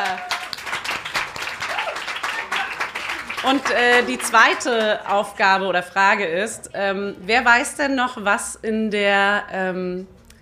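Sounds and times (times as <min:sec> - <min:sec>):
audience applause: 0:00.0 - 0:05.3
speech: 0:03.4 - 0:10.2.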